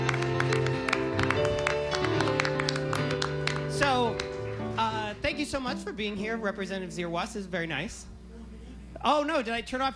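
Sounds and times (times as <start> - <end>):
audience applause welcoming guest to stage: 0.0 - 5.0
speech: 5.4 - 8.1, 9.0 - 9.9.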